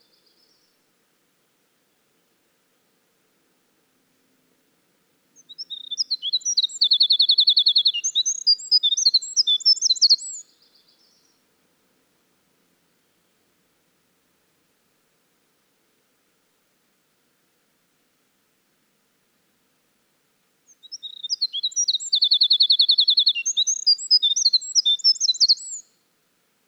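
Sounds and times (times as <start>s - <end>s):
Winter wren in full song: 5.4s - 10.4s, 20.7s - 25.9s.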